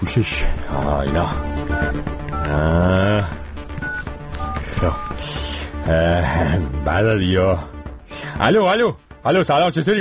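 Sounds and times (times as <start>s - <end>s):
speech: 0.0s - 3.4s, 4.8s - 10.0s
touch-tone beeps dialing a telephone number: 1.5s - 2.8s, 3.6s - 5.2s.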